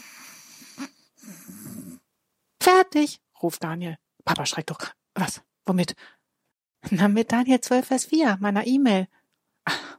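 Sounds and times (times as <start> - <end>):
soft snoring: 0.0 - 2.0
speech: 2.9 - 6.2, 6.8 - 9.8.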